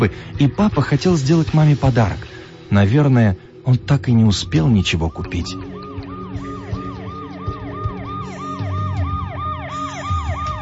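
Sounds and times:
speech: 0.0s - 5.7s
wailing siren: 4.3s - 10.6s.

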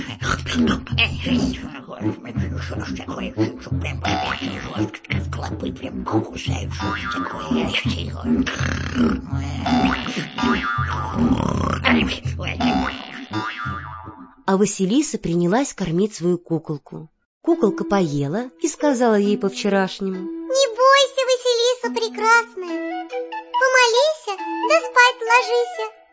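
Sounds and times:
speech: 0.3s - 13.8s, 14.5s - 26.1s
old woman snoring in a fairy-tale audiobook: 8.4s - 12.1s.

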